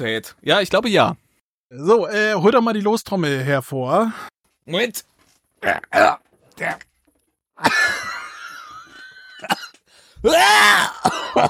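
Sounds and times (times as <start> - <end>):
speech: 0.0 - 6.9, 7.6 - 8.0, 9.4 - 11.4
person coughing after food came back up: 9.4 - 9.8, 10.7 - 11.4.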